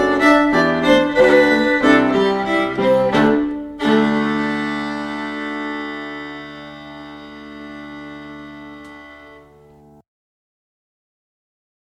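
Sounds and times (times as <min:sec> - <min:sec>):
fast fiddle tune: 0:00.0 - 0:10.0.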